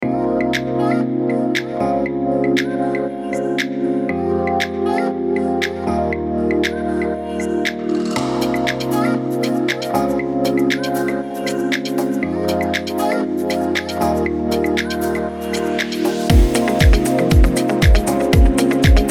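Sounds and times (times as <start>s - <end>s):
pop music: 0.0s - 19.0s.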